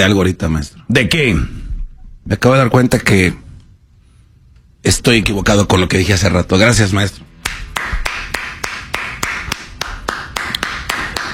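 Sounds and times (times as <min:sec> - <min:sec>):
speech: 0:00.0 - 0:01.6, 0:02.3 - 0:03.4, 0:04.8 - 0:08.0
hand clapping: 0:07.4 - 0:11.3.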